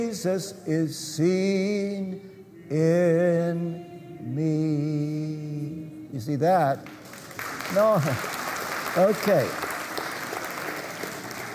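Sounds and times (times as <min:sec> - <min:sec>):
speech: 0:00.0 - 0:07.0, 0:07.7 - 0:08.4, 0:09.0 - 0:09.7
crowd clapping: 0:06.8 - 0:11.5.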